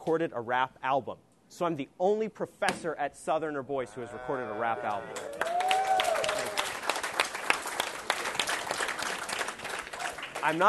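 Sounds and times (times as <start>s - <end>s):
speech: 0.0s - 5.5s, 10.4s - 10.6s
audience applause: 4.9s - 10.6s
brief voice or cheer: 5.0s - 6.8s.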